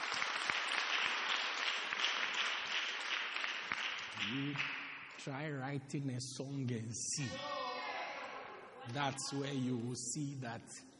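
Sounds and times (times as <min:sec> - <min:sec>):
audience clapping: 0:00.0 - 0:05.2
speech: 0:04.2 - 0:07.6, 0:08.9 - 0:10.9.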